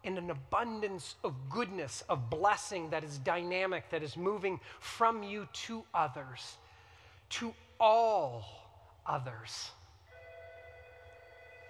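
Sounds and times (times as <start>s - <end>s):
speech: 0.0s - 6.6s, 7.3s - 9.8s
alarm ringing: 10.1s - 11.6s.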